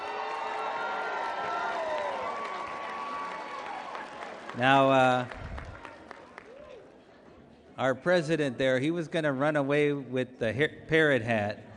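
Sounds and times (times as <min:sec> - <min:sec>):
crowd cheering and applauding: 0:00.0 - 0:06.9
speech: 0:04.6 - 0:05.4, 0:07.8 - 0:11.7.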